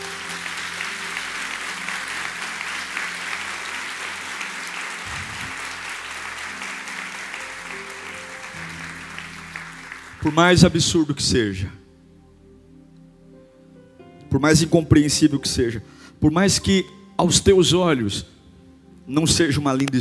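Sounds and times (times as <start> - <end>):
audience applause: 0.0 - 10.7
speech: 10.2 - 11.8, 14.3 - 18.3, 19.1 - 20.0.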